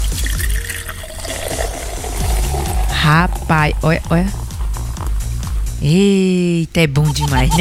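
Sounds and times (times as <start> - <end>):
liquid medicine pouring into a small cup: 0.0 - 5.7
speech: 3.1 - 4.4, 5.8 - 7.5.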